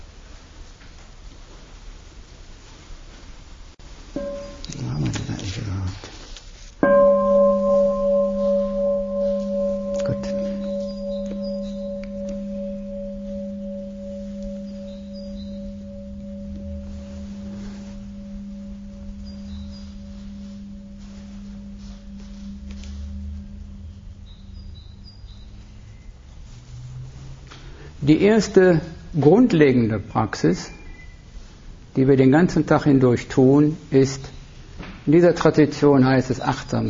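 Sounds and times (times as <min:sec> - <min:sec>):
soft rustling: 0:00.3 - 0:24.6, 0:25.4 - 0:28.0
meditation bell ringing: 0:04.2 - 0:05.8, 0:06.8 - 0:26.2
speech: 0:28.1 - 0:30.8, 0:32.0 - 0:34.3, 0:35.1 - 0:36.8.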